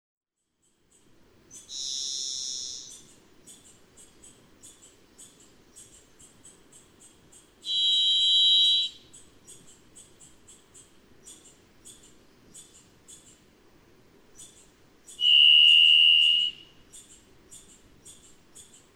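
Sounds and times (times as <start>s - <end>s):
varied thrush buzzy whistle: 7.7s - 9.0s, 15.2s - 16.7s.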